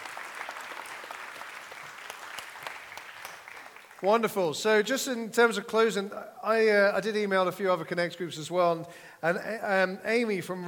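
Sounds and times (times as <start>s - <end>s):
round of applause: 0.0s - 4.1s
speech: 4.0s - 10.6s.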